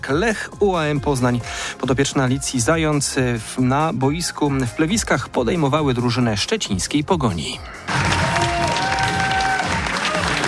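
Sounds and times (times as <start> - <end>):
speech: 0.0 - 8.2
applause after women's football match: 7.9 - 10.4.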